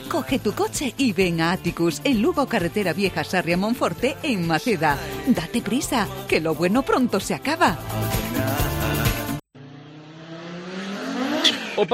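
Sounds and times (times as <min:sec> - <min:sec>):
speech: 0:00.1 - 0:08.5
race car roaring past: 0:09.6 - 0:11.9.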